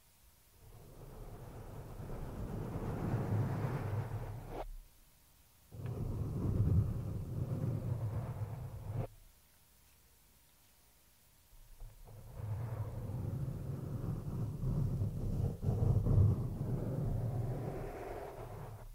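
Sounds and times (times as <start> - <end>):
scratching on a microphone: 0.8 - 4.7, 5.8 - 9.1, 11.8 - 18.9.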